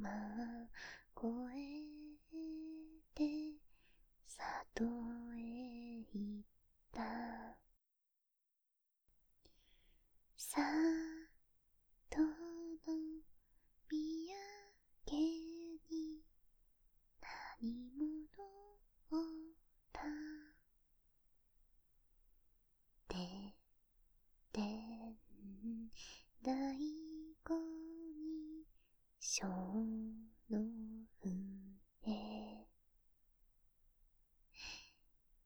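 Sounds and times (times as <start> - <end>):
person singing a lullaby ASMR: 0.0 - 3.6, 4.3 - 7.6, 10.4 - 11.4, 12.1 - 16.2, 17.2 - 20.6, 23.1 - 23.6, 24.5 - 32.7, 34.6 - 35.0.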